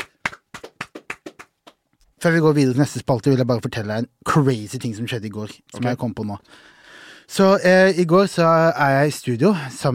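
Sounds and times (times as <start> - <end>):
applause: 0.0 - 1.8
speech: 2.2 - 9.9.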